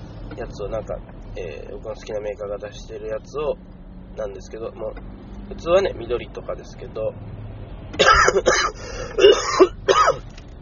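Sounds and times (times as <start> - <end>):
speech: 0.4 - 7.4, 8.0 - 10.2
man coughing and clearing his throat: 8.0 - 10.2.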